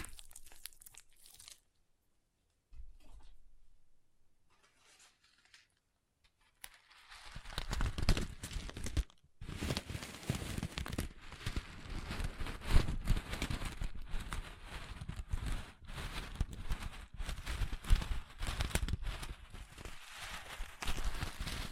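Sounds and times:
crunchy slime crackling and popping: 0.0 - 1.8, 6.5 - 21.7.

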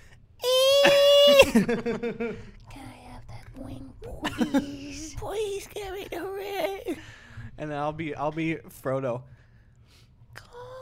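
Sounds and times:
person imitating a fantasy creature's voice with a high wail: 0.4 - 1.6
speech: 1.5 - 2.6, 3.6 - 9.3.

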